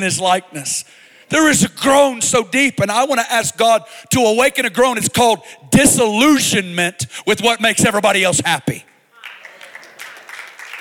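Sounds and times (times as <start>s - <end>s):
speech: 0.0s - 8.9s
audience claps: 9.1s - 10.7s.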